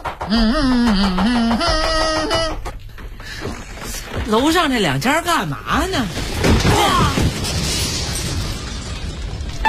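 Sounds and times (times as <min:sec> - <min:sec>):
speech: 0:00.3 - 0:01.8, 0:04.3 - 0:07.1
seventh-floor balcony collapsing and crashing down: 0:03.0 - 0:09.6.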